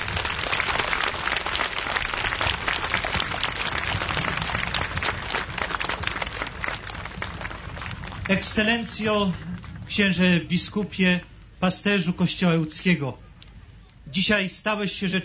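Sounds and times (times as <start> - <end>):
audience applause from a large crowd: 0.0 - 9.9
speech: 8.3 - 13.3, 14.1 - 15.2.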